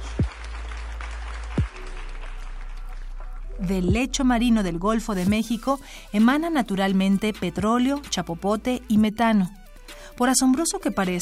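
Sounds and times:
crowd applause: 0:00.0 - 0:03.5
speech: 0:03.6 - 0:09.6, 0:10.2 - 0:11.2.

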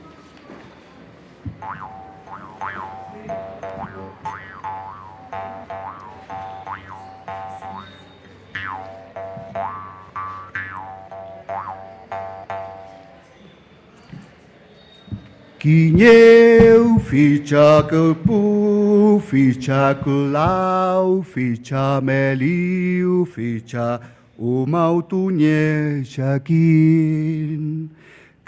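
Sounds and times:
speech: 0:01.6 - 0:04.3, 0:15.6 - 0:28.4
metal jaw harp played in the mouth: 0:01.6 - 0:08.0, 0:08.6 - 0:13.1.

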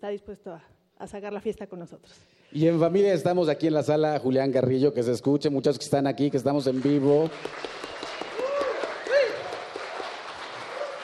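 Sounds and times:
speech: 0:00.0 - 0:08.0
live audience applause: 0:06.6 - 0:11.0.

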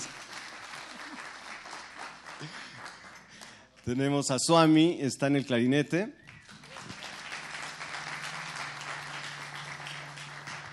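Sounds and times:
audience applause: 0:00.0 - 0:03.7, 0:06.4 - 0:10.7
speech: 0:03.9 - 0:06.2.

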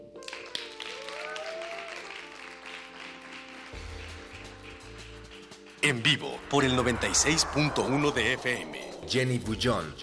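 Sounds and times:
audience applause: 0:00.2 - 0:05.7
speech: 0:05.8 - 0:10.0.

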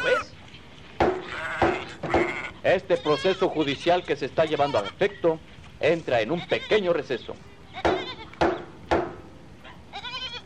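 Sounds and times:
flock of sheep bleating: 0:01.2 - 0:05.2, 0:06.2 - 0:07.0, 0:07.7 - 0:08.4, 0:09.9 - 0:10.4
speech: 0:02.7 - 0:07.9.

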